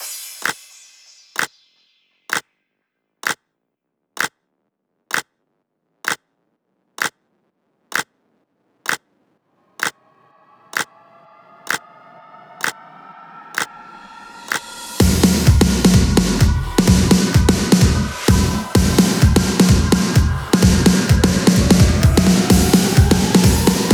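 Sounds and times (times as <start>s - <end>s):
electro house fills: 0.0s - 1.5s, 10.6s - 23.9s.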